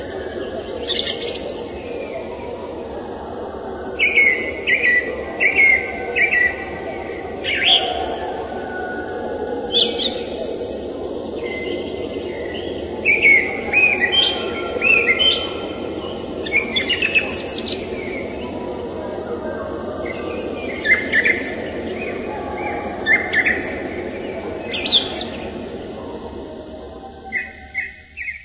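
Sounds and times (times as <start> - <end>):
song thrush: 0.0 - 28.4.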